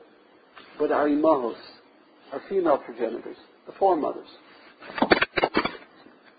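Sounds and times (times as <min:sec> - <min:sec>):
speech: 0:00.8 - 0:05.1
object knocked over clattering: 0:04.9 - 0:05.9.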